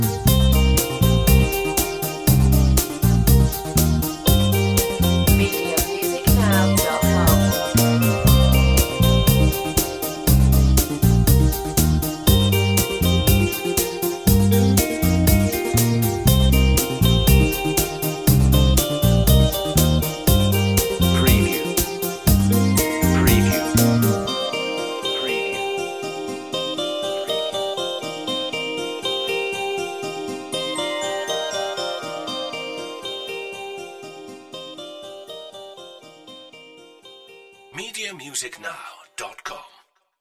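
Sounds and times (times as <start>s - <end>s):
on-hold music: 0.0s - 39.7s.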